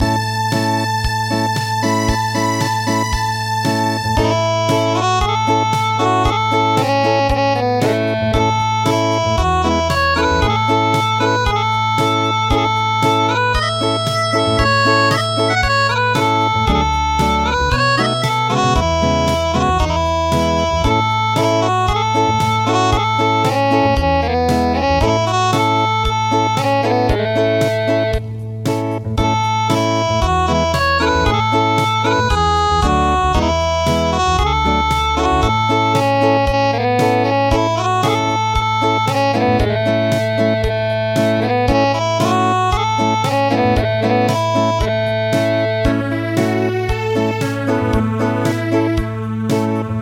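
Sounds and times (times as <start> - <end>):
acoustic midi music: 0.0 - 49.9.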